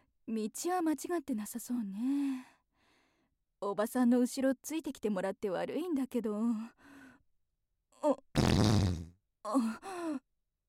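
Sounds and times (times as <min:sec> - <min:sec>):
speech: 0:00.3 - 0:02.5, 0:03.6 - 0:06.9, 0:08.0 - 0:08.8, 0:09.5 - 0:10.2
long rasping fart from a woman: 0:08.4 - 0:09.2.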